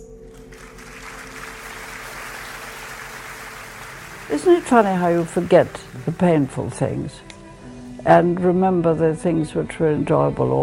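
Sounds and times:
audience applause welcoming a violinist onto the stage: 0:00.0 - 0:07.2
speech: 0:04.3 - 0:07.3, 0:08.0 - 0:10.6.

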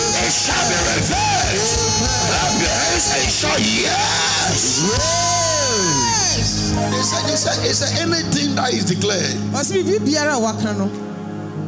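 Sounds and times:
audience shouting: 0:00.0 - 0:07.8
speech: 0:03.3 - 0:11.1.

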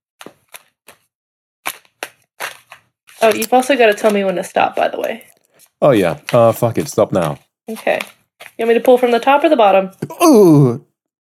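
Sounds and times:
deck of cards being riffle shuffled: 0:00.2 - 0:09.2
speech: 0:03.2 - 0:10.9.

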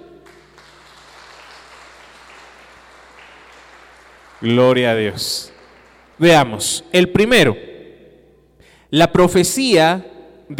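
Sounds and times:
audience applause: 0:00.2 - 0:06.3
speech: 0:04.4 - 0:05.6, 0:06.2 - 0:07.7, 0:08.9 - 0:10.5.

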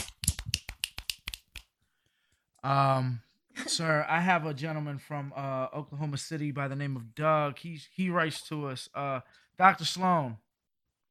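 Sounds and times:
finger snaps: 0:00.0 - 0:01.7
speech: 0:02.6 - 0:10.4.

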